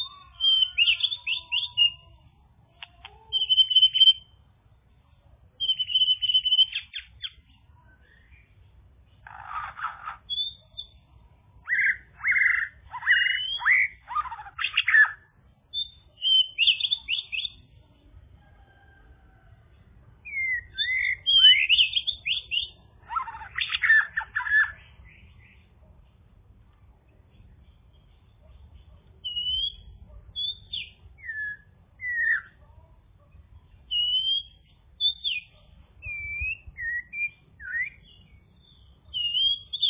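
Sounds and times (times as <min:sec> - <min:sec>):
bird whistled song: 0:00.0 - 0:02.0, 0:03.3 - 0:04.4, 0:05.6 - 0:07.4, 0:09.2 - 0:11.0, 0:11.6 - 0:17.6, 0:20.2 - 0:25.3, 0:29.2 - 0:32.6, 0:33.9 - 0:39.8
low hum: 0:00.0 - 0:39.8.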